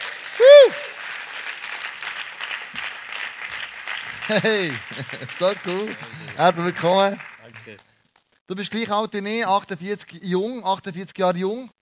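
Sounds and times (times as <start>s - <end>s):
audience applause: 0.0s - 7.8s
person whooping: 0.4s - 1.0s
laughter: 4.2s - 6.9s
speech: 4.3s - 7.9s, 8.5s - 11.8s.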